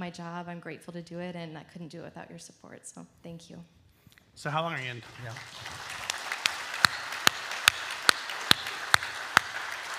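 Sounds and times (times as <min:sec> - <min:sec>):
speech: 0:00.1 - 0:03.8, 0:04.4 - 0:05.9
audience clapping: 0:04.5 - 0:09.9.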